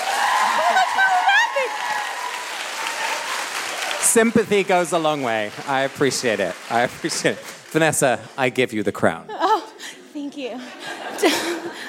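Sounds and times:
voices calling out and whooping: 0:00.0 - 0:03.9
audience clapping: 0:00.0 - 0:08.7
speech: 0:04.2 - 0:09.4, 0:10.4 - 0:11.6
laughter: 0:10.5 - 0:11.8.

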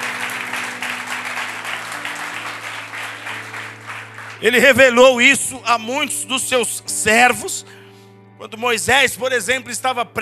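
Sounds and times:
crowd applauding: 0:00.0 - 0:05.0
speech: 0:04.4 - 0:07.8, 0:08.4 - 0:10.2.

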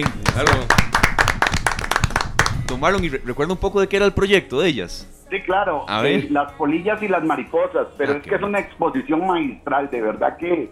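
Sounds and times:
speech: 0:00.0 - 0:00.9, 0:02.7 - 0:10.7
applause: 0:00.0 - 0:03.0.

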